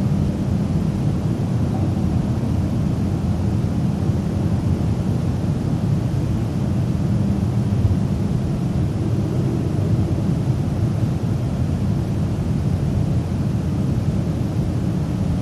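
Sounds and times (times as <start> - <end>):
distant big city rumble: 0.0 - 15.4.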